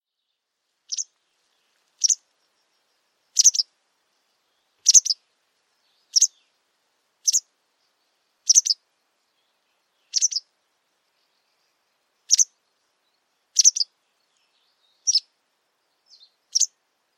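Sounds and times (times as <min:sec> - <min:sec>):
White wagtail giving short sharp high chirps: 0:00.9 - 0:01.1, 0:02.0 - 0:02.2, 0:03.4 - 0:03.7, 0:04.8 - 0:05.2, 0:05.9 - 0:06.5, 0:07.2 - 0:08.8, 0:09.4 - 0:10.5, 0:11.2 - 0:12.6, 0:13.5 - 0:15.3, 0:16.1 - 0:16.8.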